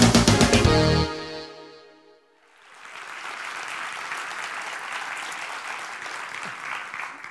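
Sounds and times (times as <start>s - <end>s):
sustained musical chord: 0.0s - 2.2s
audience applause in church: 2.5s - 7.2s.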